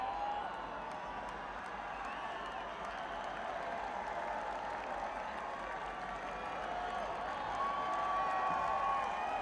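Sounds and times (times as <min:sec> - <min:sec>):
crowd at the Champlain Valley Exposition in Essex Junction, Vermont: 0:00.0 - 0:09.4.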